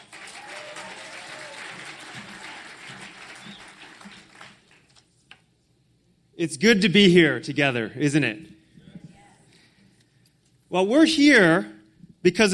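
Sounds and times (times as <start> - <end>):
Christian mission gathering crowd applauding to welcome a speaker: 0.0 - 5.0
speech: 6.4 - 8.5, 10.8 - 12.5.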